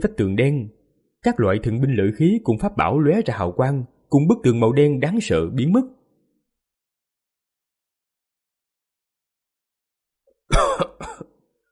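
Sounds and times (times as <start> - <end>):
speech: 0.0 - 6.0
person coughing up blood: 10.5 - 11.4.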